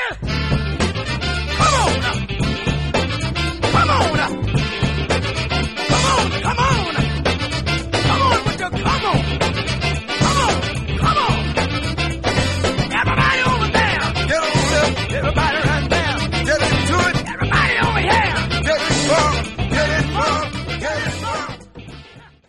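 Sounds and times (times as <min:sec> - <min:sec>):
1970s funk music: 0:00.2 - 0:22.4.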